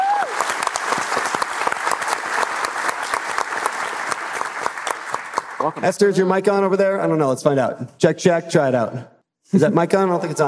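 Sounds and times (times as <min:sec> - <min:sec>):
audience applause: 0:00.0 - 0:05.8
speech: 0:05.6 - 0:10.4.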